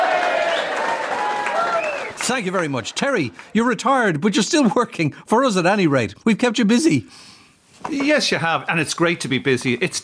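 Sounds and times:
audience applause: 0.0s - 3.8s
speech: 2.3s - 10.0s.

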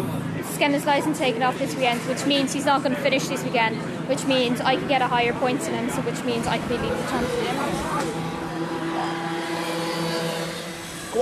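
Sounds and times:
junior motor race car engines droning in a final: 0.0s - 11.1s
speech: 0.6s - 8.2s.

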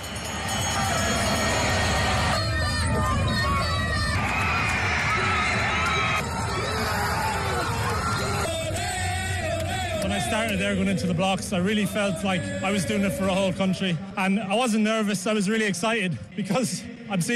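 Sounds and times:
big stadium crowd roaring and cheering: 0.0s - 10.6s
high shouts and whoops from the crowd: 0.4s - 8.5s
speech: 10.6s - 17.3s.

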